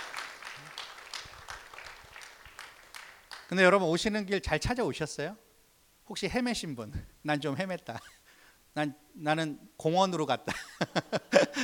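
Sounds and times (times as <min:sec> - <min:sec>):
audience applause: 0:00.0 - 0:03.5
speech: 0:03.5 - 0:05.4, 0:06.1 - 0:08.2, 0:08.8 - 0:11.6.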